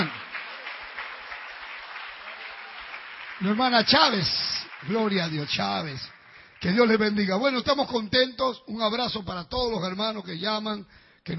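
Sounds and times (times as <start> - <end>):
church congregation clapping in praise to God: 0.0 - 8.0
speech: 3.4 - 11.3.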